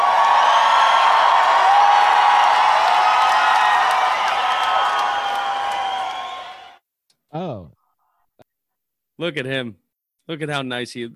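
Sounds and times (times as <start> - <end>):
applause and cheering sound effect: 0.0 - 6.8
speech: 9.2 - 11.1.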